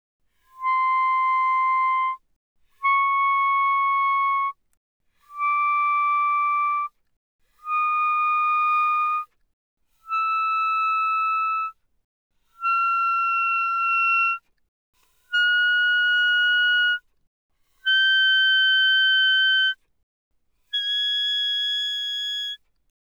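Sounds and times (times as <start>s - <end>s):
E-flat clarinet pianissimo notes C6 to A-flat 6: 0.6s - 2.2s, 2.8s - 4.6s, 5.3s - 6.9s, 7.6s - 9.2s, 10.1s - 11.8s, 12.6s - 14.4s, 15.3s - 17.0s, 17.8s - 19.8s, 20.8s - 22.6s.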